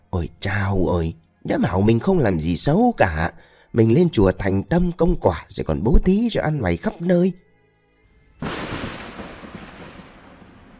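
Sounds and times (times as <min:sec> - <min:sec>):
speech: 0:00.1 - 0:07.4
thunderclap from lightning strike: 0:08.4 - 0:10.7.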